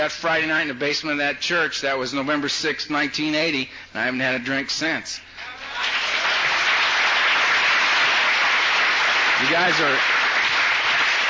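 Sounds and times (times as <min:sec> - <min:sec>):
speech: 0:00.0 - 0:05.9, 0:09.4 - 0:10.2
audience applauding: 0:05.6 - 0:11.2.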